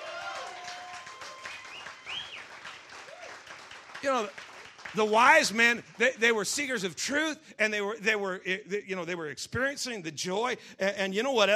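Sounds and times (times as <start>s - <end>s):
audience applause: 0.0s - 6.7s
speech: 4.0s - 11.5s.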